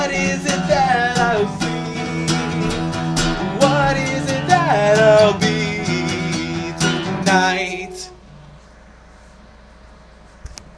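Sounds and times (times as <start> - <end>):
acoustic power metal music: 0.0 - 8.2.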